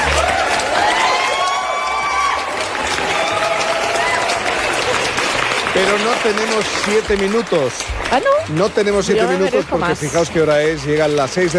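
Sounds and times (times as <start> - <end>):
audience cheering: 0.0 - 7.6
audience applause: 0.0 - 11.5
speech: 5.8 - 11.5.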